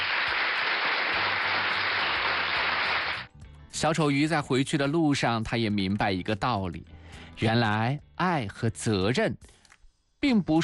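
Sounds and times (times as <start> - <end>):
applause: 0.0 - 3.3
speech: 3.8 - 9.6, 10.2 - 10.6.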